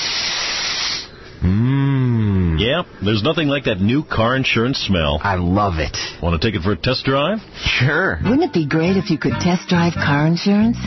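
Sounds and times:
deep inhale through the nose: 0.0s - 1.4s
speech: 2.6s - 10.8s.

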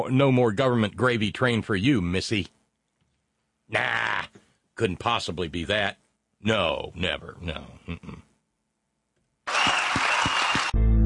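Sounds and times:
speech: 0.0s - 2.6s, 3.7s - 8.2s
audience applause: 9.5s - 10.8s.

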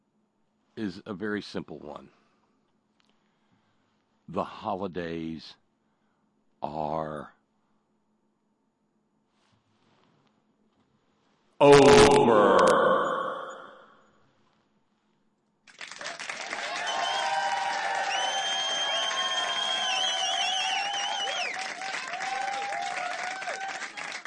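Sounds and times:
speech: 0.8s - 2.2s, 4.3s - 5.6s, 6.6s - 7.4s, 11.6s - 12.8s
canned studio audience applause: 15.7s - 24.2s.

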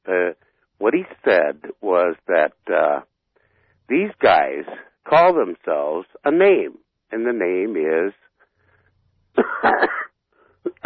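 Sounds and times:
speech: 1.0s - 3.0s, 3.9s - 8.2s, 9.6s - 10.0s
man choking coughs and throat clearing: 9.4s - 10.8s.

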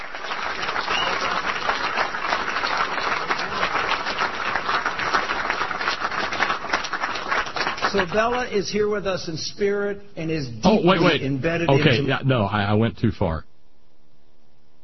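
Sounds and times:
audience clapping: 0.0s - 8.5s
speech: 7.9s - 13.5s.

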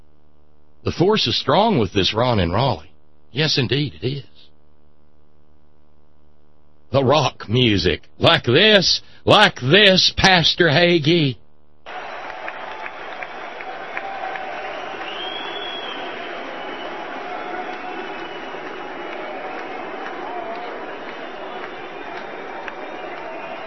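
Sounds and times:
speech: 0.8s - 4.4s, 6.9s - 11.4s
crowd clapping: 11.9s - 23.6s.

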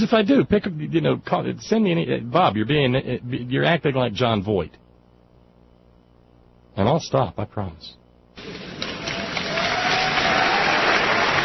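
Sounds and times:
speech: 0.0s - 4.8s, 6.8s - 8.6s
crowd applause: 8.4s - 11.4s.

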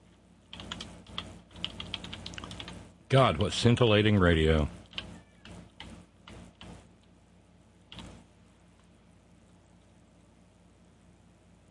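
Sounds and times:
typing on a computer keyboard: 0.5s - 2.8s, 4.8s - 6.8s, 7.9s - 8.2s
speech: 3.1s - 4.8s.

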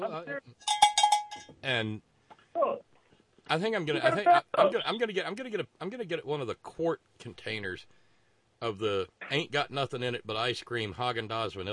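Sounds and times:
speech: 0.0s - 2.8s, 3.5s - 8.0s, 8.6s - 11.7s
metallic bell ringing: 0.6s - 1.5s.

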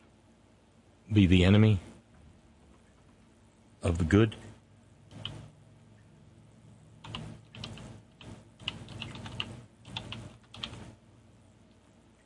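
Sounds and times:
low hum: 0.0s - 12.2s
speech: 1.1s - 1.9s, 3.9s - 4.5s
typing on a computer keyboard: 5.1s - 5.5s, 7.0s - 11.0s.

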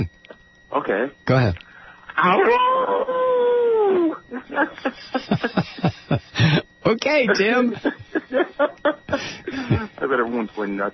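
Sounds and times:
speech: 0.8s - 3.2s, 3.9s - 10.9s
person imitating coyote howl: 2.2s - 4.2s
laughter: 4.3s - 6.6s, 7.3s - 10.0s.

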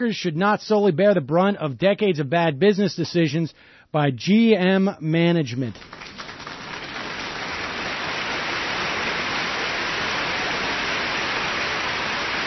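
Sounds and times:
speech: 0.0s - 6.0s
crowd applause: 5.8s - 12.4s.

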